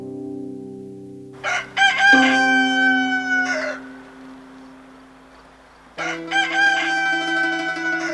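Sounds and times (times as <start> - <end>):
rooster crowing: 1.3 - 8.1.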